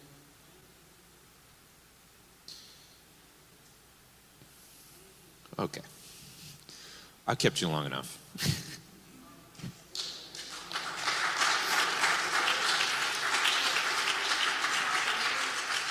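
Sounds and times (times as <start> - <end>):
speech: 5.6 - 6.0, 7.3 - 8.7
audience applauding: 9.9 - 15.9.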